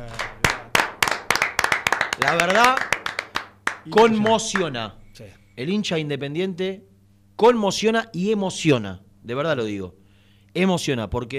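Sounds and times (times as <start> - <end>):
audience hand clapping: 0.0 - 4.8
speech: 2.2 - 2.9, 3.8 - 11.3.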